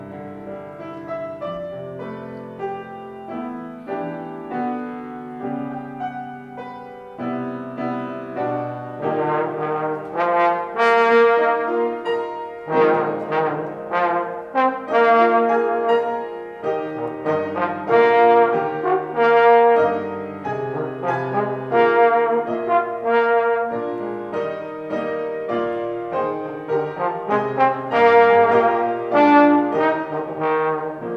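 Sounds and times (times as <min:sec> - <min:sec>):
trombone: 0:08.0 - 0:31.1.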